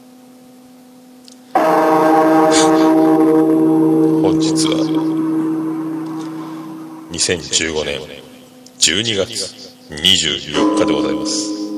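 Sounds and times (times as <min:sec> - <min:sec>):
New Year's Eve temple bell tolling: 0:01.6 - 0:08.1, 0:10.6 - 0:11.7
speech: 0:07.2 - 0:11.6.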